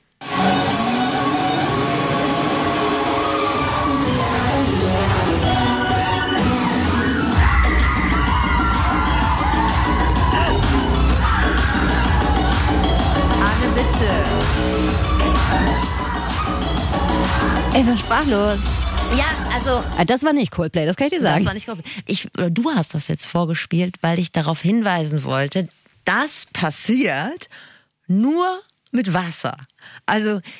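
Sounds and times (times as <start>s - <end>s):
concert crowd cheering and yelling: 0.3s - 20.0s
speech: 18.1s - 30.5s.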